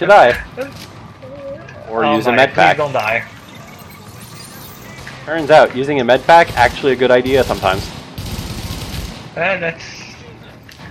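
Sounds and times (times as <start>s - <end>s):
speech: 0.0s - 0.9s, 1.9s - 3.3s, 5.3s - 8.0s, 9.4s - 9.9s
rapid automatic gunfire from video game guns: 6.2s - 9.6s.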